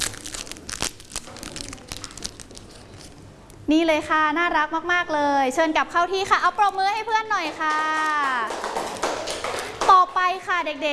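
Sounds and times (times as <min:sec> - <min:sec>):
prize package wrapper crinkling: 0:00.0 - 0:03.3
speech: 0:03.7 - 0:09.0, 0:09.9 - 0:10.9.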